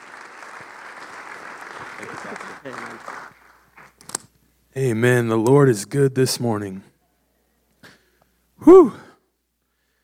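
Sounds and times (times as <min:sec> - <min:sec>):
audience clapping at a church service to welcome a speaker: 0:00.0 - 0:04.2
speech: 0:02.0 - 0:03.4, 0:04.7 - 0:06.9, 0:08.7 - 0:09.0.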